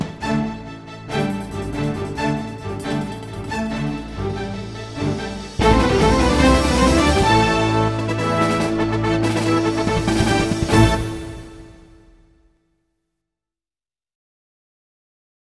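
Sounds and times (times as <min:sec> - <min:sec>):
orchestral news music: 0:00.0 - 0:11.7.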